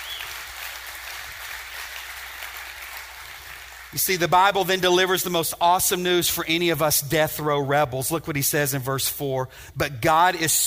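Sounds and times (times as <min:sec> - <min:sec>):
audience applause: 0:00.0 - 0:04.0
speech: 0:03.9 - 0:10.6.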